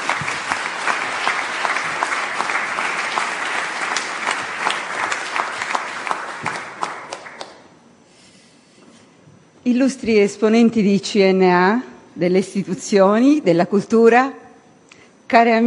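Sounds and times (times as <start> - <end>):
sustained applause from an audience: 0.0 - 7.7
speech: 9.7 - 14.4, 15.3 - 15.6.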